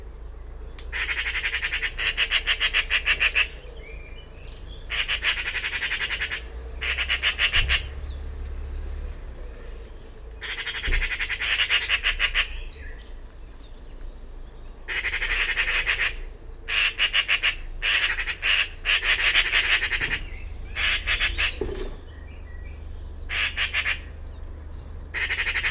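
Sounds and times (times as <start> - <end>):
bird calling with grating buzzy squawks: 0.0 - 3.6, 4.4 - 8.0, 10.4 - 12.7, 14.9 - 21.8, 22.8 - 24.1, 24.9 - 25.6.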